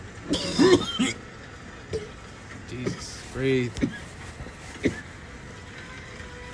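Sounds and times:
person coughing after inhaling a lot of smoke: 0.3 - 1.2, 4.8 - 5.1
speech: 0.3 - 1.3, 3.4 - 4.0.

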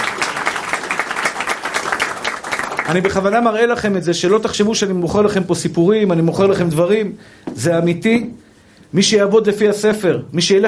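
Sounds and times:
audience applause: 0.0 - 3.5
speech: 2.9 - 10.6.

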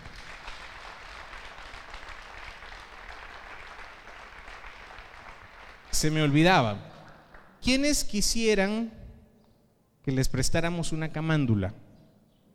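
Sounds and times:
audience applause: 0.0 - 5.9
speech: 6.0 - 6.9, 7.6 - 9.0, 10.0 - 11.8.

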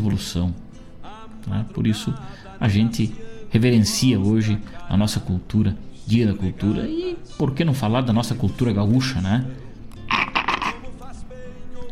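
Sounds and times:
speech: 0.0 - 0.6, 1.4 - 9.6
noise: 0.0 - 11.9
gurgling slurp of drinking mate through a straw: 10.1 - 10.8.

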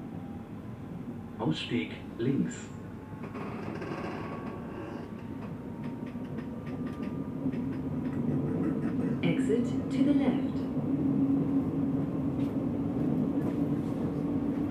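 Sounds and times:
S-Bahn train rumbling with a steady low hum: 0.0 - 14.7
clicks and knocks from the train cars: 3.2 - 9.4.

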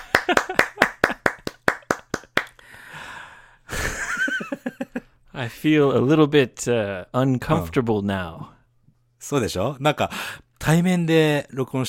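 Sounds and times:
applause: 0.0 - 2.6
speech: 0.3 - 0.9, 5.4 - 8.6, 9.2 - 11.8.

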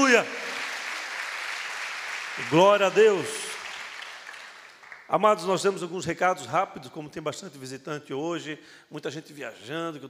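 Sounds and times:
speech: 0.0 - 0.4, 2.4 - 3.4, 5.1 - 10.0
audience applauding: 0.0 - 5.1.

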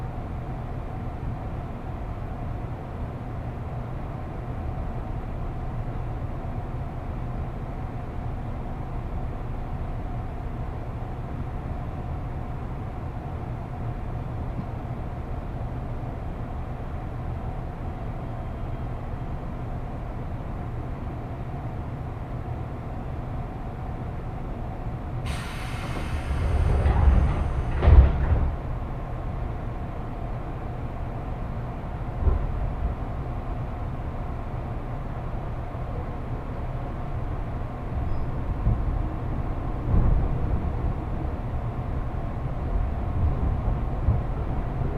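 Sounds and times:
train ride on a Japanese commuter line rumbling: 0.0 - 44.9.

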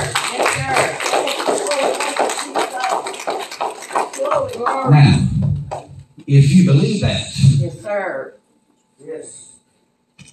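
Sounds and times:
crowd clapping: 0.0 - 6.0
speech: 6.3 - 9.5.

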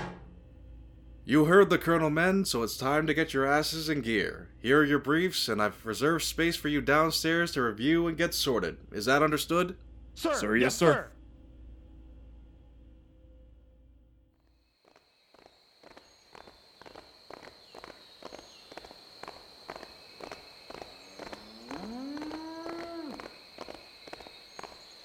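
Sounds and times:
speech: 1.3 - 11.2
marching boots: 14.9 - 25.0
power armor footsteps: 14.9 - 25.0.

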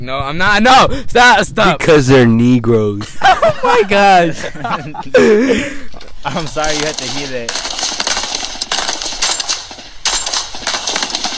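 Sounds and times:
speech: 0.0 - 7.9
laughter: 3.0 - 6.8
gunfire from the Australian military: 6.5 - 11.3.

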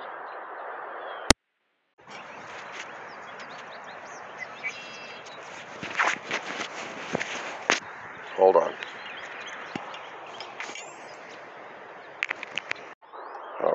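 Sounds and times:
footsteps on a lawn on the grounds of a huge corporation: 2.0 - 12.9
faint bird chirps: 2.0 - 13.7
speech: 8.4 - 8.8.

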